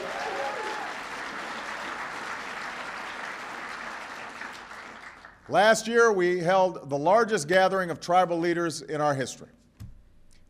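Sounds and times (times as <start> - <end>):
audience applause: 0.0 - 5.5
speech: 5.5 - 9.6.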